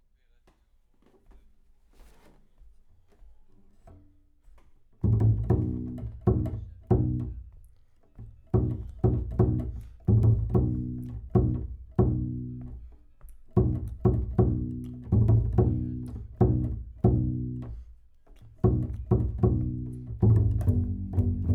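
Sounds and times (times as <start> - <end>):
bass: 5.0 - 7.6, 8.2 - 21.5.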